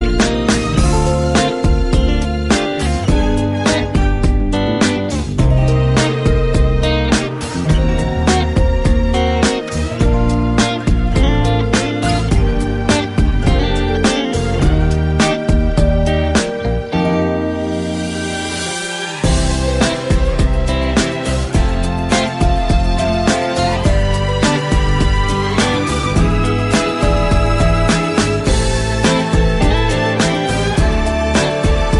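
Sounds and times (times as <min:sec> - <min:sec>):
instrumental music: 0:00.0 - 0:31.9.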